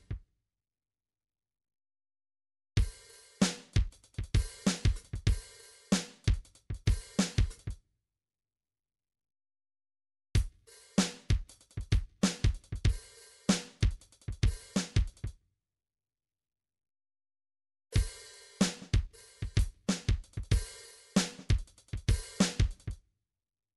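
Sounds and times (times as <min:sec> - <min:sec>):
MIDI drums: 0:02.8 - 0:07.7, 0:10.4 - 0:15.3, 0:18.0 - 0:23.0.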